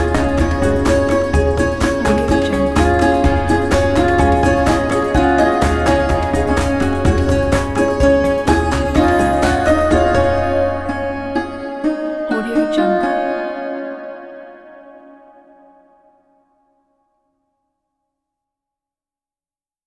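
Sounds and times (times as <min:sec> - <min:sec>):
Indian raga: 0:00.0 - 0:14.9.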